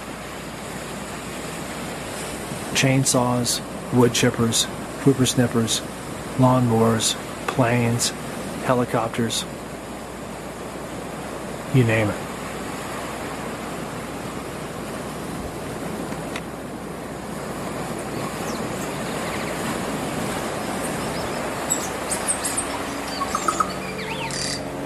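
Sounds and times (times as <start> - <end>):
ocean waves on Medlands Beach, Great Barrier Island: 0.0 - 24.8
speech: 2.8 - 9.6, 11.7 - 12.2.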